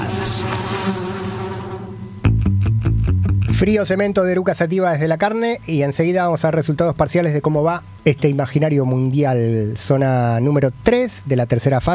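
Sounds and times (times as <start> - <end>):
swarm of flies buzzing: 0.0 - 3.0
loud rhythmic distorted pulses: 0.0 - 4.5
speech: 0.2 - 1.2, 3.6 - 11.9.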